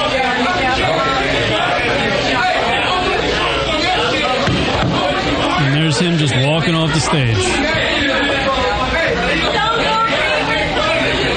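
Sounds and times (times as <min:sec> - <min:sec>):
comedy club audience yelling and jeering: 0:00.0 - 0:11.3
speech: 0:06.0 - 0:08.3.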